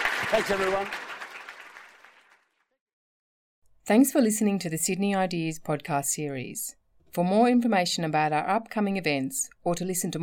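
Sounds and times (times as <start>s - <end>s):
audience applause: 0.0s - 2.6s
speech: 0.3s - 1.0s, 3.9s - 10.2s.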